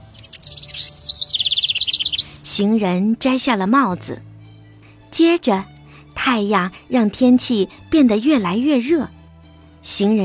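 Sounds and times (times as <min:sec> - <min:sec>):
birds singing: 0:00.0 - 0:03.1
speech: 0:02.6 - 0:04.3, 0:05.2 - 0:09.2, 0:09.8 - 0:10.2.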